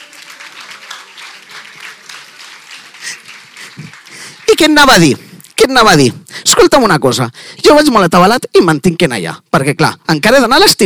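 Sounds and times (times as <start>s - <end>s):
audience applauding: 0.0s - 5.4s
speech: 4.6s - 10.8s.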